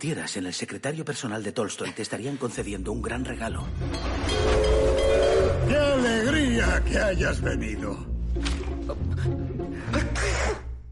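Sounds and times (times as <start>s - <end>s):
speech: 0.0s - 9.4s
person sneezing: 9.9s - 10.8s.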